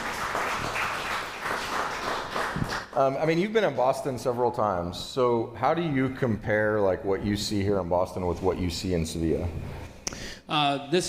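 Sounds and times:
audience applause: 0:00.0 - 0:03.0
speech: 0:03.0 - 0:09.8, 0:10.5 - 0:11.0.

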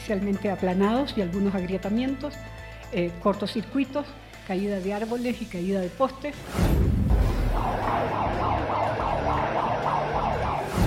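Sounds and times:
speech: 0:00.1 - 0:06.9
seismic alarm siren in the C5: 0:07.2 - 0:10.8.

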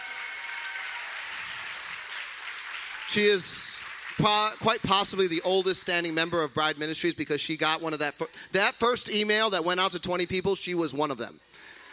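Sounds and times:
audience applause: 0:00.0 - 0:05.0
speech: 0:03.1 - 0:11.8.

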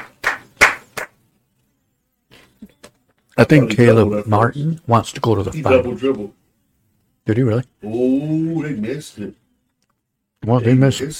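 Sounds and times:
hand clapping: 0:00.0 - 0:01.2
speech: 0:03.4 - 0:06.4, 0:07.2 - 0:09.4, 0:10.4 - 0:11.1.

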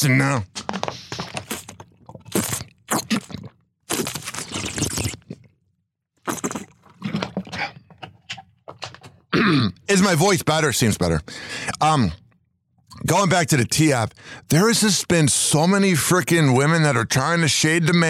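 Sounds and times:
speech: 0:00.0 - 0:00.6, 0:09.5 - 0:12.2, 0:13.0 - 0:18.0
person drinking a swig of water: 0:00.6 - 0:09.8.

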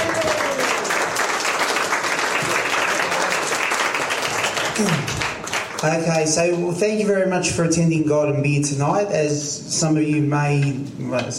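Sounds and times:
audience applause: 0:00.0 - 0:06.1
speech: 0:04.8 - 0:05.2, 0:05.8 - 0:11.3.

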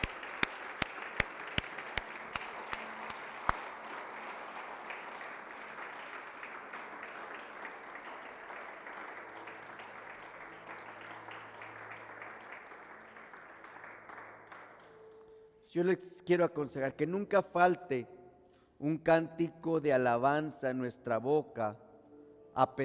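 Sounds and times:
audience applauding loudly: 0:00.0 - 0:15.4
speech: 0:15.7 - 0:18.2, 0:18.8 - 0:21.8, 0:22.6 - 0:22.8.

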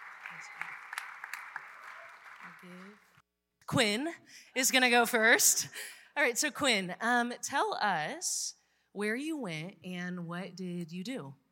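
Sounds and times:
audience applause: 0:00.0 - 0:03.2
speech: 0:00.3 - 0:01.0, 0:02.4 - 0:03.1, 0:03.7 - 0:11.4.

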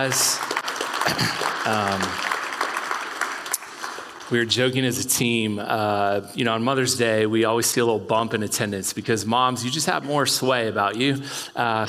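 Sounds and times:
speech: 0:00.0 - 0:02.2, 0:04.3 - 0:11.8
church audience applause: 0:00.0 - 0:04.5.

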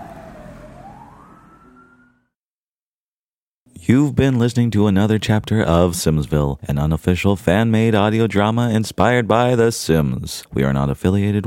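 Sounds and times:
fire truck siren: 0:00.0 - 0:02.4
speech: 0:03.8 - 0:11.4.

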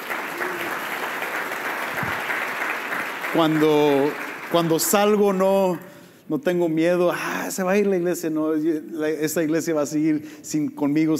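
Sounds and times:
audience applause: 0:00.0 - 0:05.8
speech: 0:03.3 - 0:11.1.

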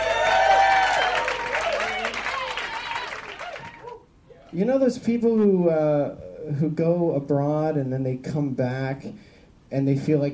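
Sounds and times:
stand-up comedy audience clapping for a comedian: 0:00.0 - 0:04.0
stand-up comedy audience voices cheering: 0:00.0 - 0:04.5
speech: 0:04.6 - 0:10.3.

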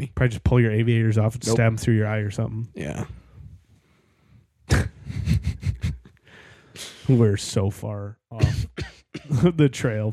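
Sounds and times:
speech: 0:00.0 - 0:03.2, 0:07.1 - 0:10.1
coughing: 0:04.7 - 0:06.1, 0:08.4 - 0:09.6.

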